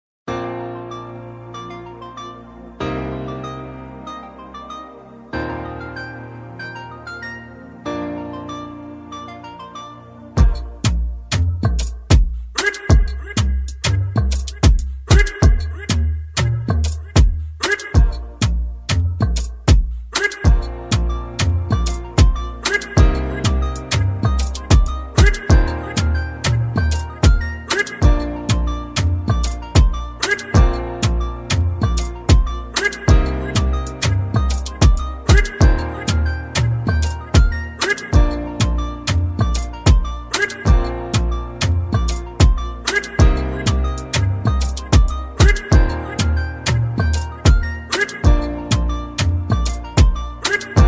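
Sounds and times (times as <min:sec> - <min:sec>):
instrumental music: 0:00.3 - 0:50.8.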